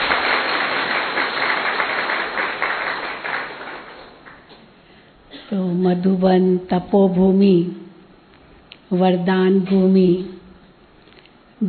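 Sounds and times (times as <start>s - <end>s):
crowd applause: 0.0s - 4.4s
speech: 5.8s - 7.8s, 8.9s - 10.4s.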